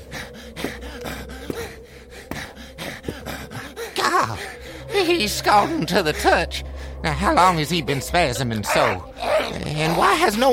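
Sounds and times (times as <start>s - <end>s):
ragged laboured breathing: 0.0s - 10.5s
speech: 4.2s - 10.5s.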